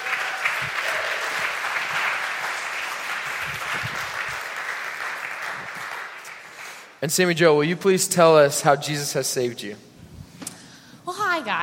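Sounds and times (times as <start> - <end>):
audience applause: 0.0 - 7.0
speech: 0.6 - 1.0, 7.0 - 9.9, 11.4 - 11.6.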